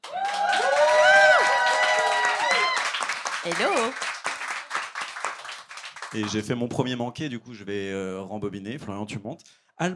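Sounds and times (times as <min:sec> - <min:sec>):
cheering and whooping: 0:00.0 - 0:03.1
audience applause: 0:00.0 - 0:06.5
speech: 0:03.4 - 0:04.1, 0:06.1 - 0:09.9.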